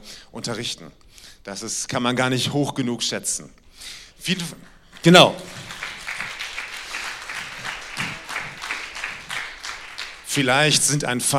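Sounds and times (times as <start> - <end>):
speech: 0.4 - 5.7, 10.3 - 11.3
audience applause: 5.0 - 11.0.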